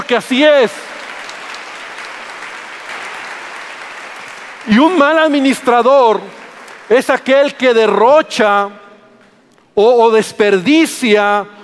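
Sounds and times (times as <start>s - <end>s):
speech: 0.1s - 0.9s, 4.7s - 8.8s, 9.8s - 11.6s
audience applause: 0.7s - 7.5s.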